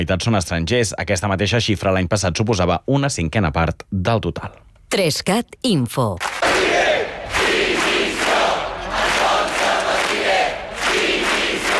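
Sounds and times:
speech: 0.0 - 6.3
protesters chanting a slogan at a demonstration: 6.4 - 11.7.

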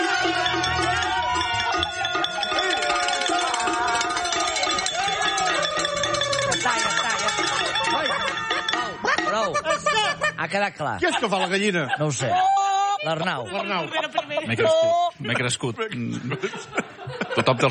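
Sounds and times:
charivari crowd shouting: 0.0 - 10.2
charivari crowd clanging bells and metal: 0.0 - 12.0
laughter: 0.0 - 17.6
speech: 10.5 - 17.6.

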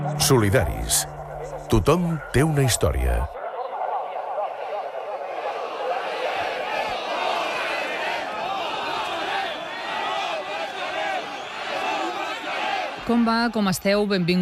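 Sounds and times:
speech: 0.2 - 3.3, 13.1 - 14.4
farmers shouting at protest demonstration: 3.3 - 14.4.

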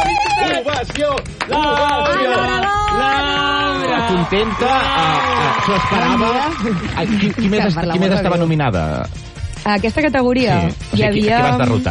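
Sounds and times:
studio ovation applause: 0.0 - 8.6
speech: 0.8 - 11.8.

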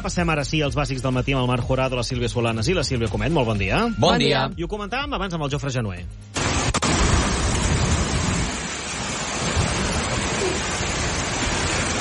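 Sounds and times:
speech: 0.0 - 6.7
downburst violent wind gust roaring in L'Hospitalet de Llobregat: 6.4 - 11.9.

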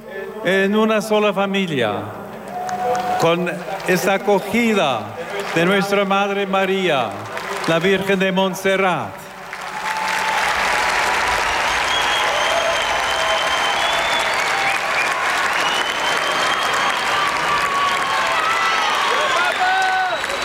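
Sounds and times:
speech: 0.4 - 2.2, 3.2 - 9.2
large crowd applause: 2.3 - 20.4
whistles: 11.4 - 18.2, 19.2 - 20.4.

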